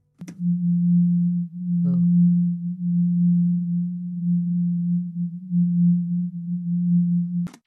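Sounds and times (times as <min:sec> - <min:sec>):
clicks: 0:00.2 - 0:00.5
low pulsing hum tone: 0:00.2 - 0:07.5.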